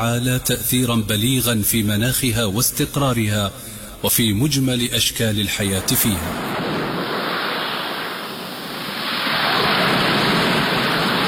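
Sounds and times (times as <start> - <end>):
speech: 0.0 - 6.7
sea waves surging: 5.8 - 11.2.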